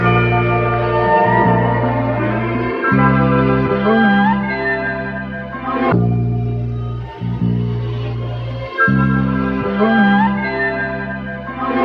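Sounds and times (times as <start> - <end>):
guitar loops: 0.0 - 11.8.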